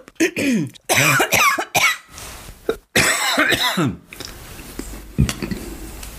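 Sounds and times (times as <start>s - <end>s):
harsh coughing after a sip of sparkling wine: 0.2s - 2.1s, 2.7s - 4.0s.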